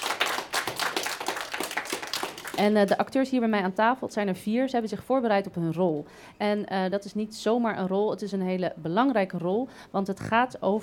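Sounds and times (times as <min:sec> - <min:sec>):
audience clapping for school student actors: 0:00.0 - 0:03.0
speech: 0:02.6 - 0:10.8.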